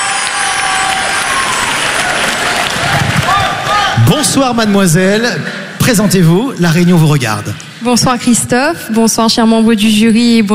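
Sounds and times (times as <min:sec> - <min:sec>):
audience applause: 0:00.0 - 0:04.5
crowd noise: 0:00.0 - 0:10.5
speech: 0:04.1 - 0:10.5.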